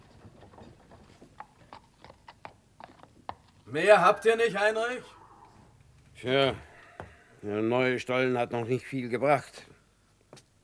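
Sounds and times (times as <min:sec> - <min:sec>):
horse-drawn cart hooves clip-clopping: 0:00.0 - 0:04.3
speech: 0:03.7 - 0:05.2, 0:06.2 - 0:06.7, 0:07.4 - 0:09.7.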